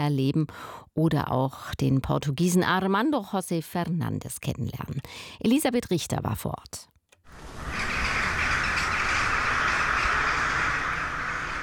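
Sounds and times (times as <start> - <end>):
speech: 0.0 - 6.9
crows cawing in a castle garden: 7.4 - 11.6.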